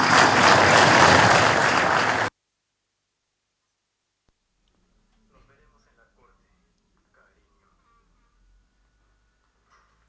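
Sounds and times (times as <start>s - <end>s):
audience applause: 0.0s - 2.3s.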